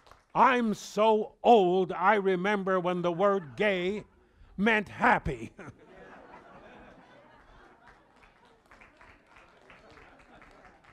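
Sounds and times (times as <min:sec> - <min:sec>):
speech: 0:00.4 - 0:05.8
laughter: 0:03.0 - 0:04.4, 0:05.0 - 0:10.9
crowd applause: 0:06.2 - 0:10.9.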